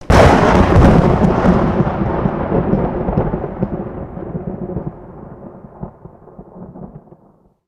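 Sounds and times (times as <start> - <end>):
lightning: 0.0 - 7.5.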